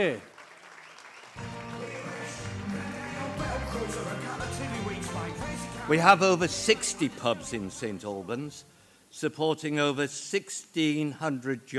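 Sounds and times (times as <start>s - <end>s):
speech: 0.0s - 0.3s, 5.3s - 11.7s
crowd applause: 0.0s - 5.3s
crowd cheering: 0.3s - 4.6s.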